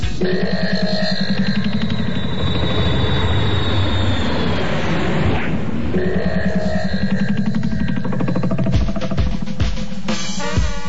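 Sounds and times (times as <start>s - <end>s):
rattling rhythmic thuds: 0.0s - 3.2s, 5.9s - 10.8s
Concorde jet airplane roaring: 0.0s - 9.1s.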